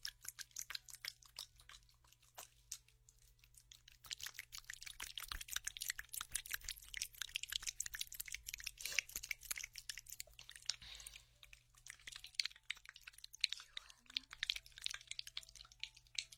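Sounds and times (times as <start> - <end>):
aloe gel worked over the ears crackling and squishing: 0.0 - 16.3.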